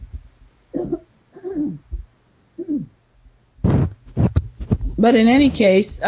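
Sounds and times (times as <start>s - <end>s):
throat clearing: 0.7s - 1.9s, 2.6s - 3.0s
speech: 5.0s - 6.0s.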